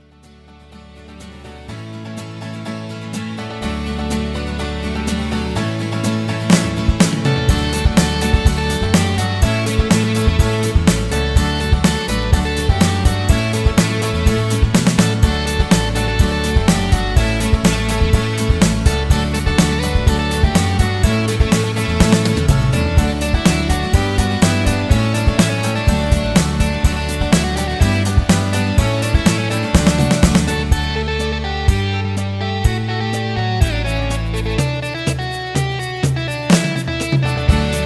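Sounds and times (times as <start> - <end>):
instrumental music: 0.0 - 37.8.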